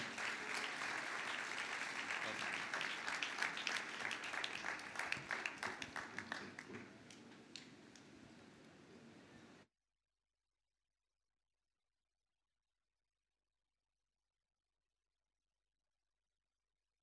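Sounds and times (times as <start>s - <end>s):
loud audience applause: 0.0s - 7.8s.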